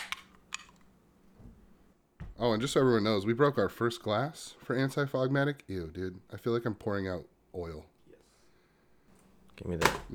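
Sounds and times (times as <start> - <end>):
beer can cracking open: 0.0 - 0.8
speech: 2.4 - 7.9, 9.6 - 10.1.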